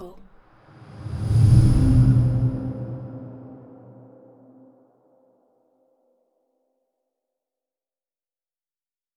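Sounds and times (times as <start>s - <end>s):
scary air passing by: 0.7s - 4.7s.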